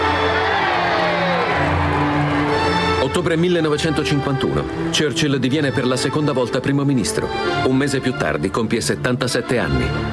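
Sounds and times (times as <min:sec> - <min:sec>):
crowd giving three cheers for Winston Churchill: 0:00.0 - 0:02.9
speech: 0:03.2 - 0:10.1.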